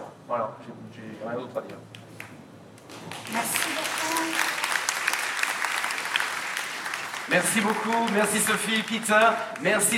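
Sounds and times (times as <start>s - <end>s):
speech: 0.3s - 2.3s, 2.9s - 4.5s, 7.3s - 9.9s
audience applause: 2.9s - 9.9s.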